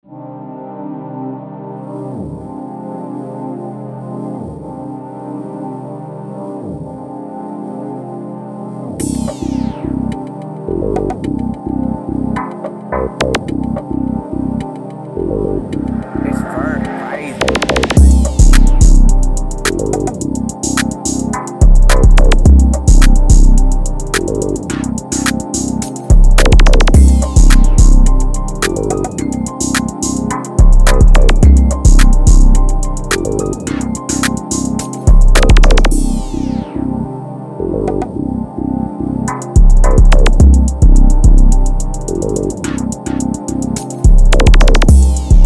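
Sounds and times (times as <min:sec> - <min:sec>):
C minor type beat at 107 bpm: 0:17.4 - 0:36.2, 0:39.3 - 0:45.4.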